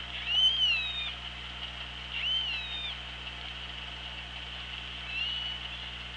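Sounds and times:
killer whale calls: 0.1 - 1.2, 2.1 - 3.0, 5.0 - 5.9.

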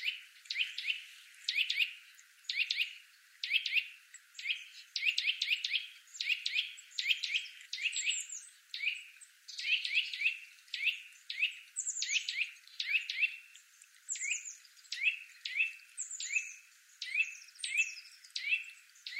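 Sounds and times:
Eurasian nuthatch piping calls: 0.0 - 13.4, 14.1 - 19.1.

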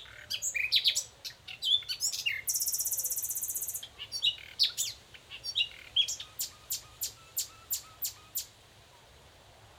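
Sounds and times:
common nightingale Luscinia megarhynchos song: 0.0 - 9.2.

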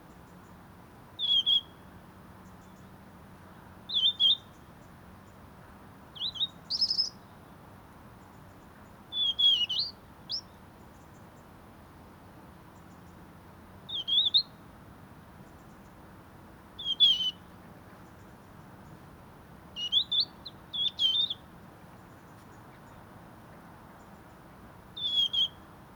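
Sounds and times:
European robin singing: 1.2 - 1.8, 3.9 - 4.8, 6.2 - 7.4, 8.2 - 11.3, 13.9 - 14.6, 16.8 - 19.0, 19.8 - 23.0, 25.0 - 25.7.

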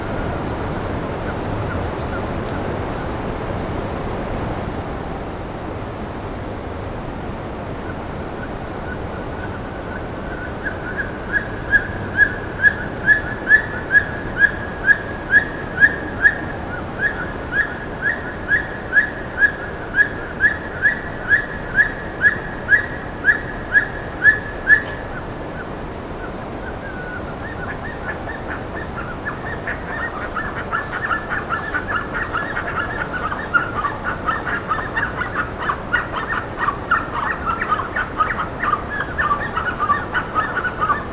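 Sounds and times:
background hiss: 0.0 - 41.1
bird calls, clear sharp chirps: 8.9 - 41.1.

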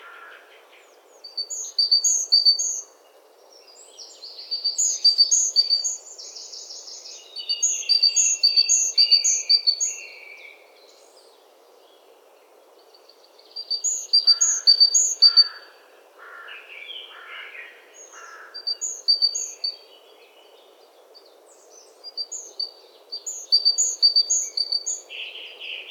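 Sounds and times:
steady background hiss: 0.0 - 25.8
great tit calls: 1.3 - 2.8, 7.4 - 9.9, 13.6 - 19.8, 22.0 - 25.1.

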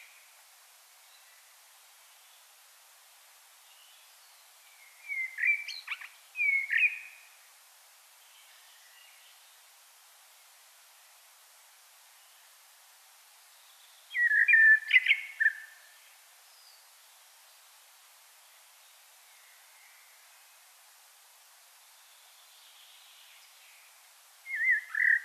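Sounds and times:
common blackbird singing: 5.0 - 7.2, 14.1 - 15.7, 24.5 - 25.2.

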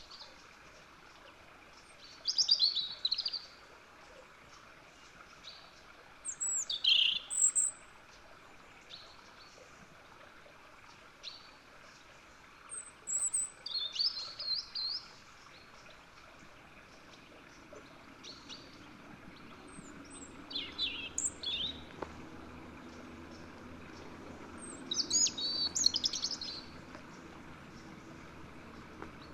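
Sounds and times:
European robin Erithacus rubecula singing: 2.0 - 3.5, 5.4 - 7.8, 12.7 - 15.7, 17.0 - 22.2, 22.8 - 29.3.

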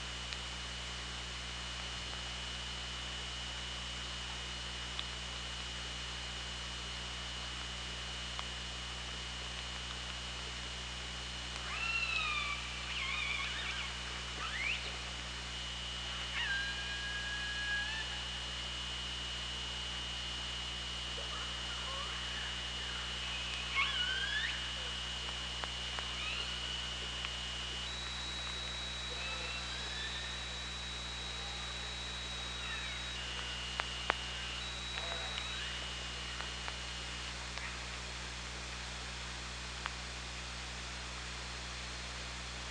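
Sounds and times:
low electrical hum: 0.0 - 42.6
killer whale calls: 11.6 - 15.0, 16.1 - 18.3, 21.2 - 25.0, 28.9 - 31.8, 32.4 - 33.6
clicks: 25.2 - 36.9.

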